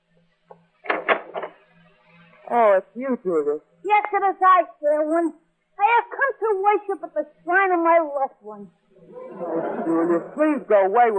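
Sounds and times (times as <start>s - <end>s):
door being answered with click, woody thumps and rattles: 0.8s - 1.6s
speech: 2.5s - 11.1s
laughter: 9.0s - 10.8s.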